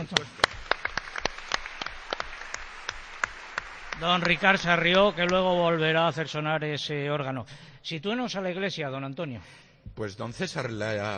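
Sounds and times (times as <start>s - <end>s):
speech: 0.0s - 0.6s, 4.0s - 11.1s
audience applause for the organist: 0.0s - 6.7s.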